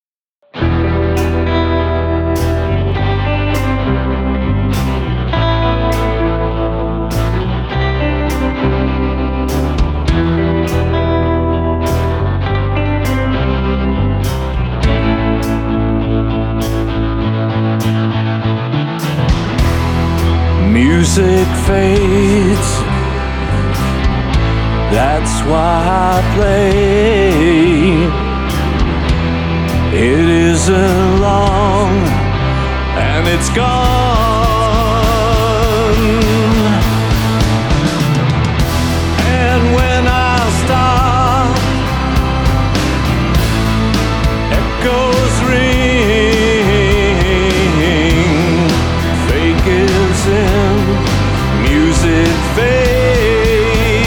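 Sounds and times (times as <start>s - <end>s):
music: 0.0s - 54.0s.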